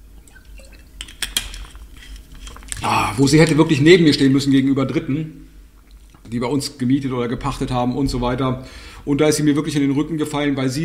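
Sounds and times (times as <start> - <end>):
person sipping water: 1.6 - 3.3, 5.7 - 6.2
speech: 3.2 - 5.5, 6.3 - 10.8.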